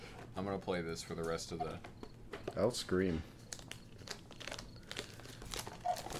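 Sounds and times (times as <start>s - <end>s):
speech: 0.4s - 2.0s, 2.6s - 3.4s
crinkly foil wrapper of trading card packs tearing and crumpling: 3.4s - 6.1s.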